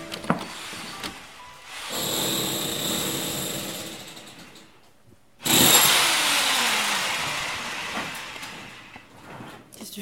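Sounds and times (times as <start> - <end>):
power drill boring a hole for a network cable: 0.4 - 4.0, 5.4 - 9.1.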